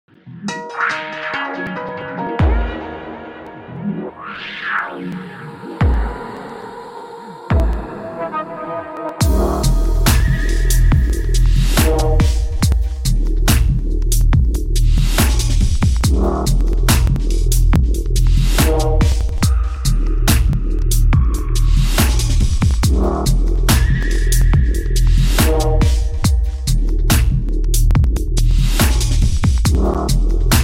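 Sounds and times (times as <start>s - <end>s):
dubstep music: 0.2s - 30.6s.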